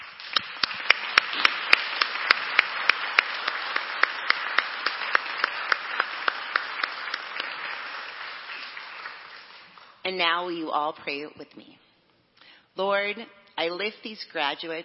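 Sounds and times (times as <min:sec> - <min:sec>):
crowd applauding: 0:00.0 - 0:10.0
speech: 0:10.1 - 0:11.8, 0:12.8 - 0:14.8.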